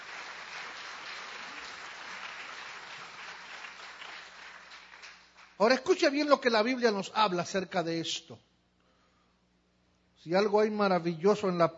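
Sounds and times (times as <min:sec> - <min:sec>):
crowd clapping: 0:00.0 - 0:05.8
speech: 0:05.6 - 0:08.5, 0:10.2 - 0:11.7.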